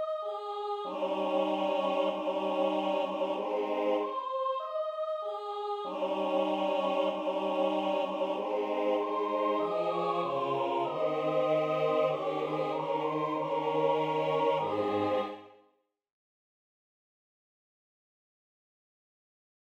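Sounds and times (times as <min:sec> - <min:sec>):
SATB four-part choir singing: 0:00.0 - 0:15.6.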